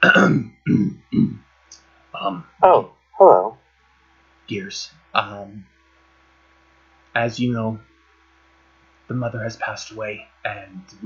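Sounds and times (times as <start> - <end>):
man clearing his throat: 0.0 - 1.4
speech: 0.0 - 1.4, 2.2 - 3.5, 4.5 - 5.7, 7.2 - 7.9, 9.1 - 11.0.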